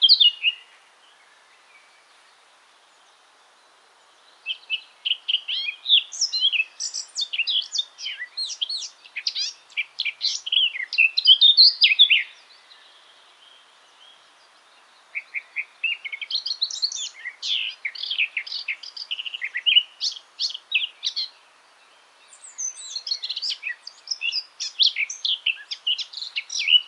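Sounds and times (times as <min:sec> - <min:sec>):
Eurasian blackcap song: 0:00.0 - 0:00.7, 0:04.5 - 0:12.6, 0:15.2 - 0:21.4, 0:22.3 - 0:26.8.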